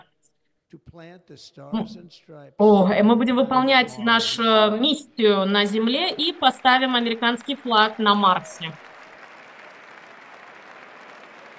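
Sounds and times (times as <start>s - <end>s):
speech: 0.7s - 8.9s
crowd applause: 4.0s - 11.5s.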